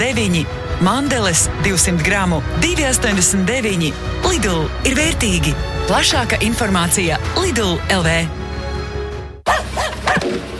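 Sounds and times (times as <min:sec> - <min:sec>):
speech: 0:00.0 - 0:08.4
music: 0:00.0 - 0:10.5
dog barking loudly: 0:09.5 - 0:10.3.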